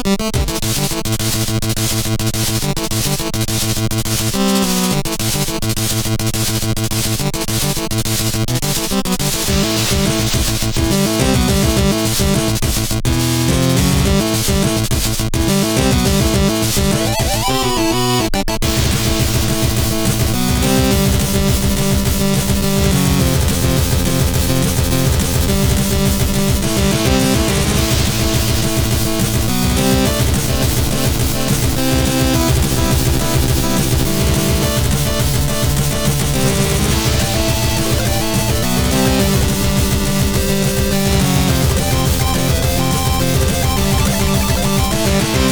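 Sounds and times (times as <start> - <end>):
chip metal music: 0.2 - 45.5.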